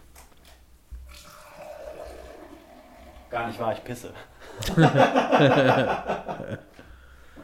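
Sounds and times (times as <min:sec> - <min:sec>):
beer pouring into a glass, foaming: 0:01.1 - 0:03.9
speech: 0:03.3 - 0:06.7
laughter: 0:04.5 - 0:06.7.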